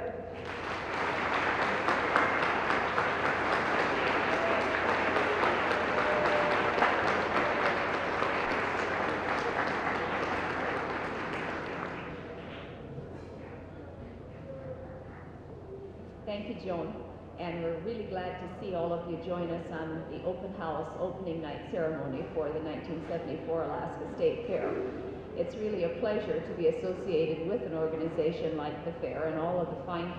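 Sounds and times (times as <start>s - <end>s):
audience applause at the 1974 Alaska State Fair opening night ceremony: 0.4s - 12.7s
speech: 16.6s - 30.1s.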